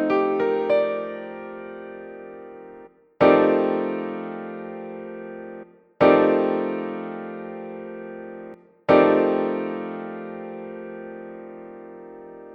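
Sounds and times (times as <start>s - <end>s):
F13 piano chord: 0.0s - 12.5s.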